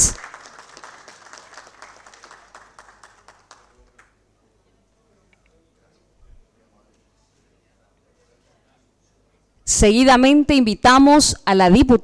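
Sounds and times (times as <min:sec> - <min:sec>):
audience applause: 0:00.0 - 0:04.2
speech: 0:09.8 - 0:12.0.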